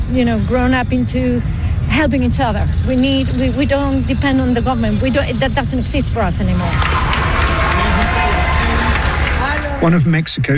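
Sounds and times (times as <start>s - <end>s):
speech: 0.1s - 7.1s, 9.8s - 10.5s
crowd cheering at an airport in Venezuela for rescue team: 6.5s - 10.0s.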